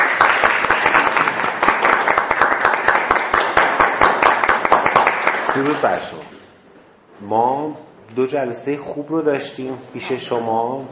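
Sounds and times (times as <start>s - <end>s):
online class participants clapping for themselves: 0.0s - 6.2s
speech: 5.6s - 6.3s, 7.2s - 10.9s.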